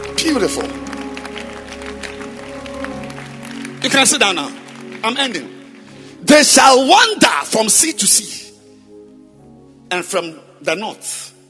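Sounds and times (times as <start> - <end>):
audience clapping hands at a sermon: 0.0 - 6.2
speech: 0.2 - 1.0, 3.8 - 5.6, 6.2 - 8.4, 9.9 - 11.3.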